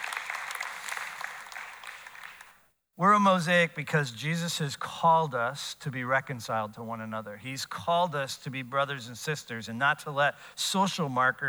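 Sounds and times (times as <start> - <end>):
audience clapping: 0.0 - 2.6
speech: 3.0 - 11.4.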